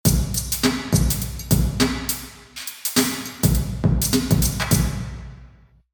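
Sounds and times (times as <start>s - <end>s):
church drum: 0.1s - 2.3s, 3.0s - 5.3s.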